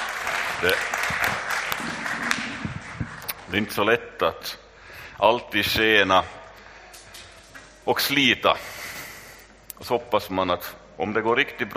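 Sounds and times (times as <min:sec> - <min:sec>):
audience applause: 0:00.0 - 0:03.5
speech: 0:00.6 - 0:01.4, 0:03.5 - 0:04.6, 0:05.2 - 0:06.4, 0:07.9 - 0:08.8, 0:09.8 - 0:11.7.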